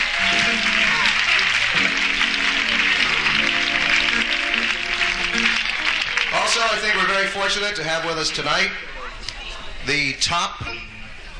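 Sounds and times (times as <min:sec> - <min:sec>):
audience round of applause: 0:00.0 - 0:08.3
speech: 0:07.2 - 0:09.0, 0:09.8 - 0:10.8.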